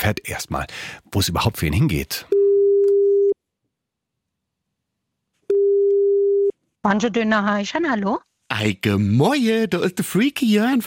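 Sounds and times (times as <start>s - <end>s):
speech: 0.0s - 2.4s, 6.8s - 10.8s
telephone ringing tone during outgoing call: 2.3s - 3.4s, 5.5s - 6.5s.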